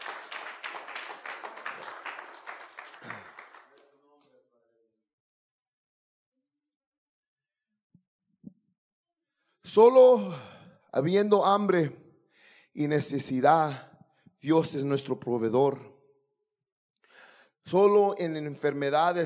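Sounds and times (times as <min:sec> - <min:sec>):
crowd clapping: 0:00.0 - 0:04.3
speech: 0:09.8 - 0:12.0, 0:12.8 - 0:15.9, 0:17.6 - 0:19.2.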